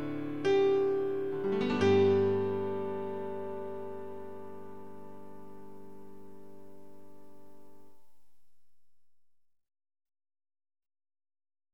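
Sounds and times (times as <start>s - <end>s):
instrumental music: 0.0s - 8.8s.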